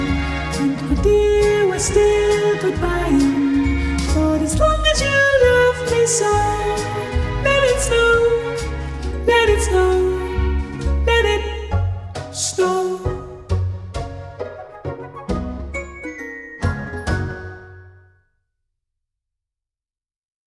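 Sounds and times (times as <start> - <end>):
soprano singing: 0.0 - 13.6.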